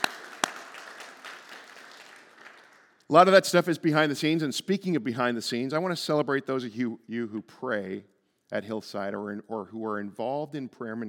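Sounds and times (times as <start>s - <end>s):
sharp loud hand claps: 0.0s - 3.0s
speech: 3.1s - 11.0s.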